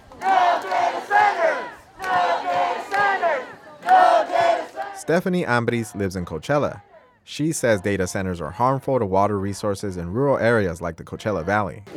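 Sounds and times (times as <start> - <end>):
large crowd of protesters chanting in unison: 0.0 - 8.7
speech: 5.1 - 11.9.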